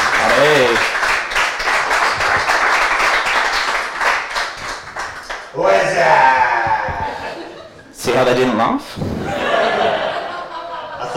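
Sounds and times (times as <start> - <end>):
audience applause welcoming a co-host to the stage: 0.0 - 5.5
laughter: 6.6 - 8.0, 9.2 - 11.1
speech: 8.2 - 9.3.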